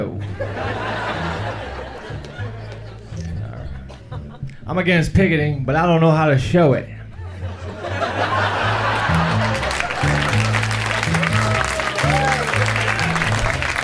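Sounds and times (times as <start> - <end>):
audience laughter: 0.2 - 4.4, 7.1 - 13.8
speech: 4.7 - 7.0
sporadic audience applause: 8.2 - 13.8.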